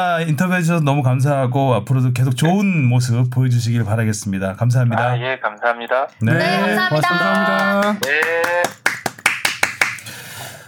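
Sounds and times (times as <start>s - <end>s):
speech: 0.0s - 8.8s
people clapping in the studio: 6.4s - 10.2s.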